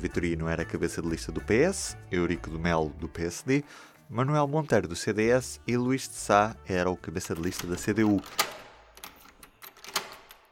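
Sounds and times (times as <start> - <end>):
speech: 0.0 - 8.6
door of archive room opening: 7.2 - 10.5.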